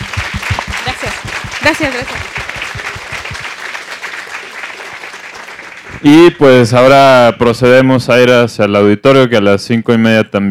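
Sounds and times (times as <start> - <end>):
audience applause after a talk: 0.0 - 6.6
speech: 1.6 - 2.4, 6.0 - 10.4.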